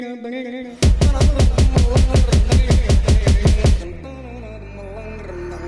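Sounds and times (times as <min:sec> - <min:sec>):
trap remix: 0:00.8 - 0:04.7.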